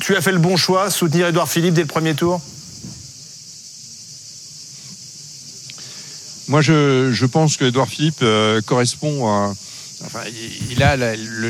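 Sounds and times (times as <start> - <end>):
speech: 0.0 - 2.6, 6.5 - 11.4
cicadas buzzing: 0.0 - 11.4.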